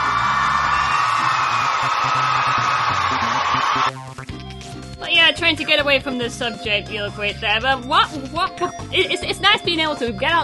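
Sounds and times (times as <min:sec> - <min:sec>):
crowd cheering and applauding: 0:00.0 - 0:03.9
speech: 0:05.4 - 0:10.4.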